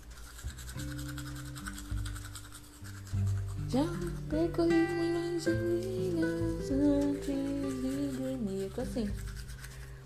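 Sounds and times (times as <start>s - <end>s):
brushing teeth with a toothbrush: 0.0s - 10.0s
speech: 3.7s - 9.3s.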